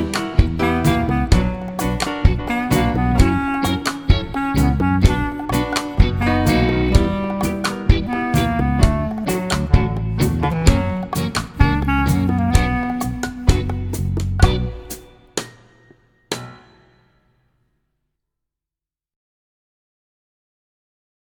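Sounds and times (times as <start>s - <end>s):
tango music: 0.0s - 15.0s.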